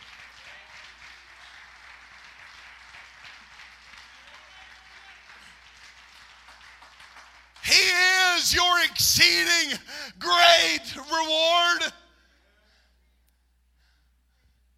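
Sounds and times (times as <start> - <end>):
audience clapping hands: 0.0 - 8.9
speech: 8.5 - 12.0.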